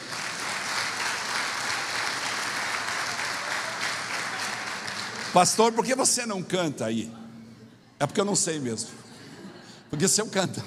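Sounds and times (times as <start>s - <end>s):
audience applauding: 0.0s - 5.9s
speech: 5.3s - 7.2s, 8.0s - 9.1s, 9.9s - 10.6s.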